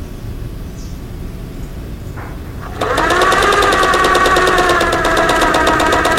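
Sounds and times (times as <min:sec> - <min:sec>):
sewing machine running: 0:02.6 - 0:06.1.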